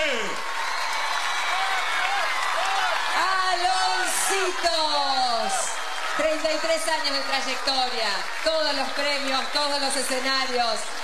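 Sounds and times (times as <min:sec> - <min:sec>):
audience applause: 0:00.0 - 0:11.0
crowd cheering and whooping: 0:00.0 - 0:11.0
speech: 0:06.4 - 0:11.0.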